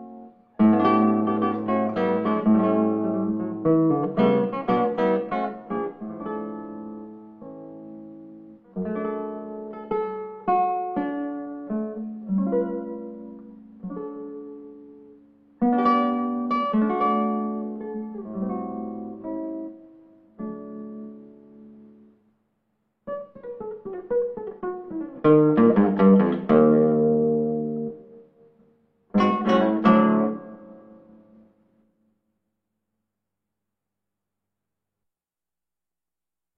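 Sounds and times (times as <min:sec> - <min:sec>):
classical guitar instrumental: 0:00.0 - 0:22.2, 0:23.0 - 0:31.6.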